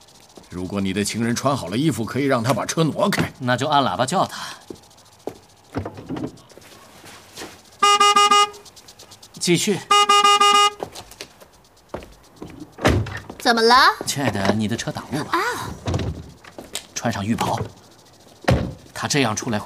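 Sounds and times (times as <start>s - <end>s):
people talking: 0.5s - 4.6s, 9.4s - 10.7s, 13.4s - 15.9s, 16.9s - 17.8s, 18.9s - 19.6s
car horn blasts: 7.8s - 8.7s, 9.9s - 10.8s.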